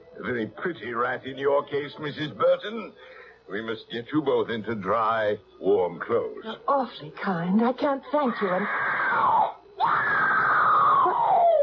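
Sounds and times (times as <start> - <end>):
speech: 0.2 - 10.4
distant person screaming: 8.4 - 11.6.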